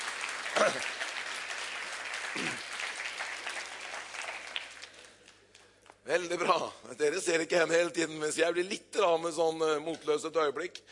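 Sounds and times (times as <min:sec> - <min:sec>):
audience applause: 0:00.0 - 0:05.5
speech: 0:00.7 - 0:01.0, 0:06.1 - 0:10.9.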